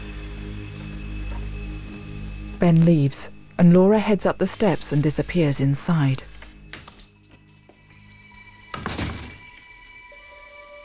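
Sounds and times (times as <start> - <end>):
speech: 2.6 - 6.3
kitchen door thunking shut: 8.7 - 9.6.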